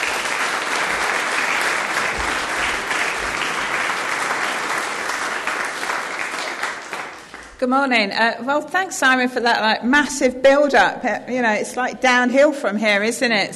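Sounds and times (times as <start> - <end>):
audience applause welcoming a speaker to a morning gathering in Felixstowe: 0.0 - 7.6
speech: 7.6 - 13.5.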